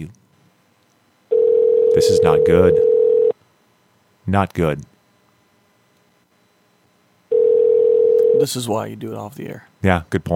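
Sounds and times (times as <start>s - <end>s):
speech: 0.0s - 0.2s, 2.0s - 2.9s, 4.3s - 4.9s, 8.4s - 10.3s
outgoing phone call ringing tone: 1.3s - 3.3s, 7.3s - 8.5s.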